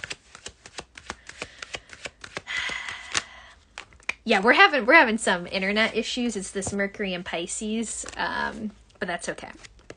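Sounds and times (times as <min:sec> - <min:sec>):
tarot cards clicking while handled: 0:00.0 - 0:04.2
speech: 0:04.2 - 0:09.7.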